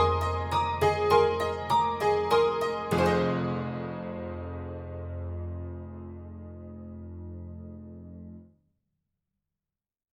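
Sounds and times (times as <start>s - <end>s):
upright tack piano: 0.0s - 8.4s.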